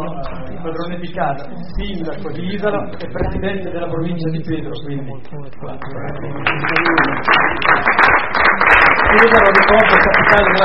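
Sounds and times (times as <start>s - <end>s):
speech: 0.7s - 10.6s
audience applause at a civic cultural event: 5.8s - 10.6s.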